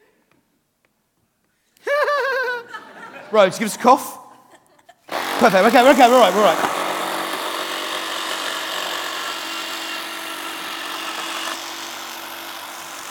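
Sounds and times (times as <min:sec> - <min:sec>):
laughter: 0:01.8 - 0:06.0
speech: 0:03.3 - 0:04.2, 0:05.4 - 0:06.7
saw cutting through wood: 0:05.1 - 0:13.1.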